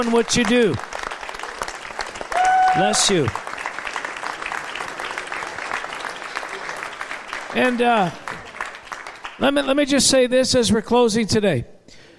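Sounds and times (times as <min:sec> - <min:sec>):
speech: 0:00.0 - 0:00.9, 0:02.8 - 0:03.4, 0:07.6 - 0:08.3, 0:09.4 - 0:11.7
audience applause: 0:00.0 - 0:09.5.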